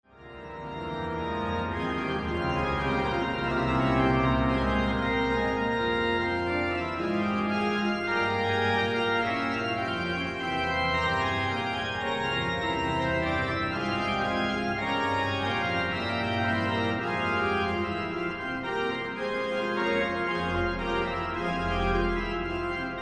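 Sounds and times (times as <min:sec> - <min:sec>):
organ fugue in C minor: 0:00.1 - 0:23.0.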